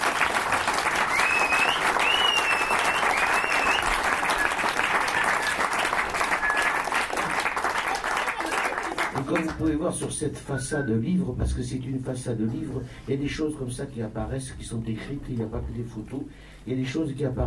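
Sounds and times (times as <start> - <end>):
audience applause: 0.0 - 9.7
speech: 9.8 - 17.4.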